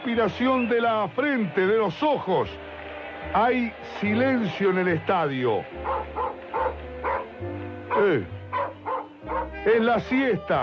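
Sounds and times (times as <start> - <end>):
speech: 0.0 - 6.9, 8.0 - 8.4, 9.6 - 10.6
dog barking: 5.8 - 7.3, 7.9 - 9.5.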